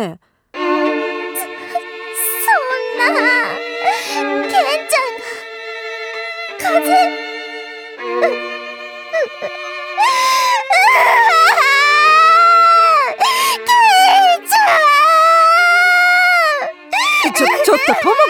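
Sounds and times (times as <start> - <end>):
speech: 0.0 - 0.3
girl crying in loud drawn-out wails: 1.4 - 5.4, 6.6 - 7.1, 9.2 - 18.2.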